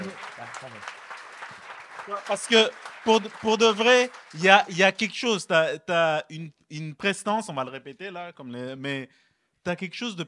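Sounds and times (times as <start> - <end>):
crowd applauding: 0.0 - 5.4
speech: 2.1 - 10.2.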